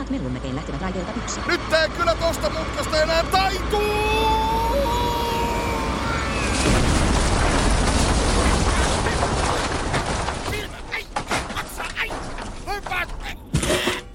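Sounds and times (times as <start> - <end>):
speech: 0.1 - 5.0
metro train derailing and crashing: 0.8 - 14.1
clattering debris: 6.2 - 14.1.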